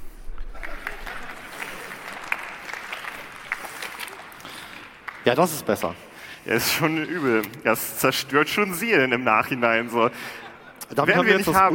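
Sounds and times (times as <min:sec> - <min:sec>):
audience clapping faintly: 0:00.3 - 0:06.0
speech: 0:05.2 - 0:11.7.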